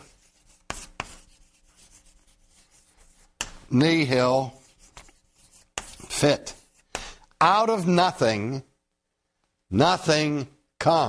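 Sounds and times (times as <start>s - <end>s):
handwriting strokes: 0.0s - 7.3s
speech: 3.7s - 4.6s, 6.2s - 6.6s, 7.4s - 8.7s, 9.7s - 11.0s.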